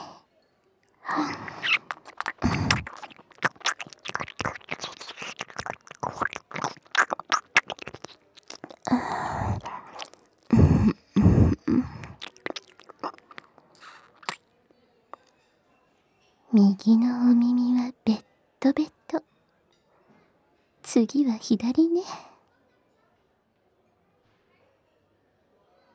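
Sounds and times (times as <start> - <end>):
wet ASMR ear-licking mouth sounds: 1.0 - 14.4
speech: 1.2 - 1.5, 16.6 - 17.6, 21.1 - 22.3.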